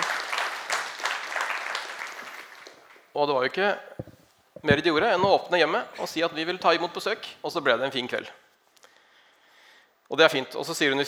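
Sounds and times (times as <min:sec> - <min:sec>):
audience applause: 0:00.0 - 0:02.9
speech: 0:03.2 - 0:08.4, 0:10.1 - 0:11.0.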